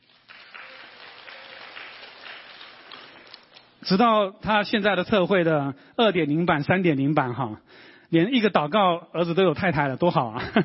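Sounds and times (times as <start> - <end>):
audience applause: 0.0 - 3.8
speech: 3.9 - 10.6.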